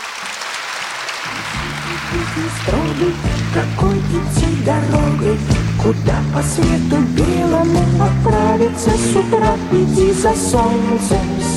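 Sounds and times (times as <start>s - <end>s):
audience applause: 0.0s - 6.7s
speech: 2.0s - 11.5s.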